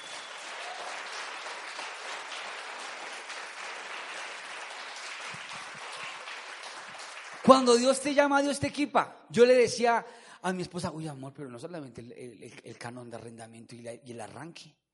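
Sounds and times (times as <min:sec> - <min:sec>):
audience applause: 0:00.0 - 0:07.9
speech: 0:07.4 - 0:14.8.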